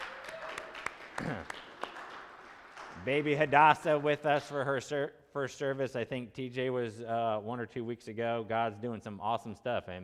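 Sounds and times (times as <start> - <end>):
audience applause: 0.0 - 4.5
speech: 3.0 - 10.0.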